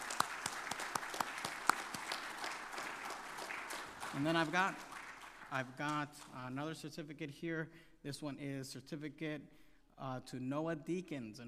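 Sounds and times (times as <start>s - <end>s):
round of applause: 0.0s - 6.4s
speech: 4.2s - 4.9s, 5.5s - 11.4s.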